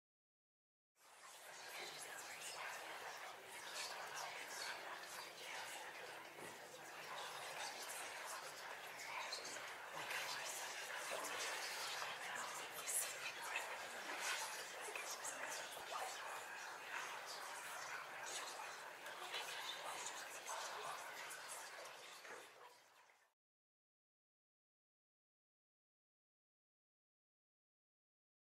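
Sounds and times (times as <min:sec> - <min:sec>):
people whispering: 0:01.2 - 0:22.7.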